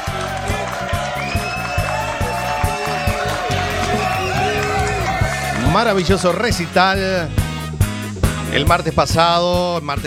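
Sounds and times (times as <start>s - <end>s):
scattered whoops and shouts: 0.0s - 5.8s
crowd clapping: 0.0s - 7.6s
speech: 5.8s - 7.4s, 8.5s - 10.0s.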